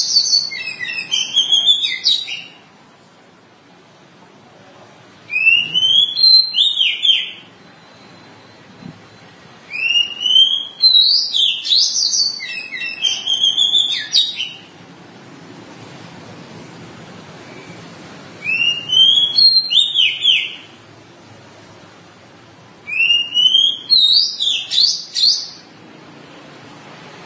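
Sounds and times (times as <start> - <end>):
Oriental magpie-robin song: 0.0 - 2.6, 5.3 - 8.6, 9.7 - 14.7, 17.4 - 20.8, 22.9 - 25.7.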